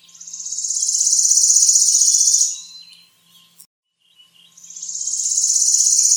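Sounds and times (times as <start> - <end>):
bird buzzy high-pitched trill: 0.1 - 3.6, 4.6 - 6.1.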